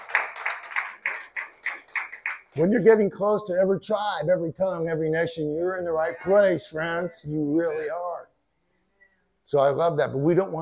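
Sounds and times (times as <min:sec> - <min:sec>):
clapping: 0:00.0 - 0:02.6
speech: 0:02.6 - 0:08.1, 0:09.5 - 0:10.6.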